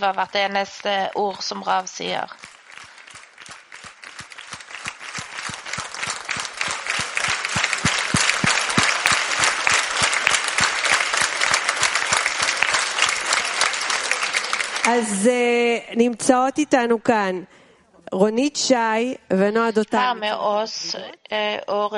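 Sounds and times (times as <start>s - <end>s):
speech: 0.0s - 2.5s, 14.8s - 21.9s
large audience applause: 0.0s - 15.2s.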